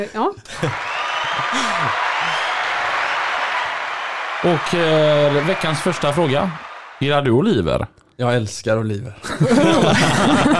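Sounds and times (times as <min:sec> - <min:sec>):
speech: 0:00.0 - 0:02.5, 0:04.4 - 0:10.5
laughter: 0:00.5 - 0:03.0, 0:09.2 - 0:10.5
applause: 0:00.5 - 0:07.3.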